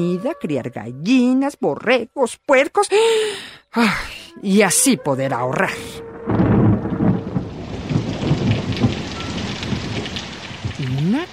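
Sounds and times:
speech: 0.0 - 6.4
torrential rain: 5.7 - 11.3
thunder: 6.0 - 11.3.

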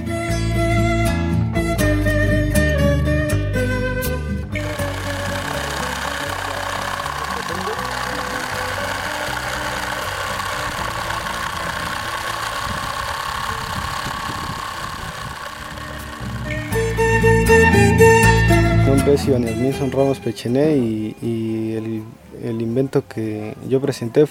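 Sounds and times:
music: 0.0 - 24.2
small homemade electricity generator from Jambaló running: 4.4 - 20.0
speech: 19.2 - 24.2.

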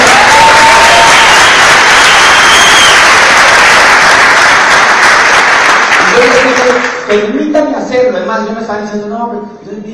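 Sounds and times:
audience applause: 0.0 - 7.1
speech: 7.1 - 9.9.

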